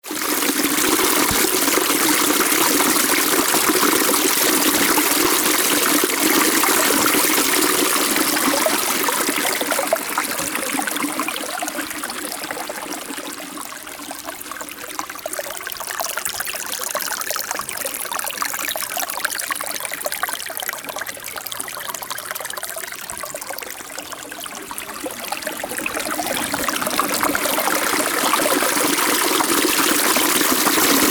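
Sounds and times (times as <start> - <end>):
Anna fountain water in Deggingen: 0.0 - 31.0.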